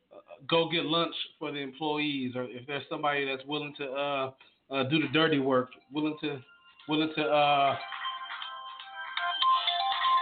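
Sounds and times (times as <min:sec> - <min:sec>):
speech: 0:00.4 - 0:08.0
phone ringtone for an incoming call: 0:05.8 - 0:10.1.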